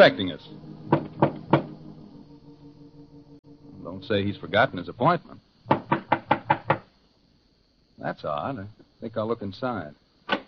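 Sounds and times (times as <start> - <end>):
speech: 0.0 - 0.7, 3.9 - 5.4, 8.0 - 10.0
knocks on a library door: 0.9 - 1.8, 5.7 - 6.9.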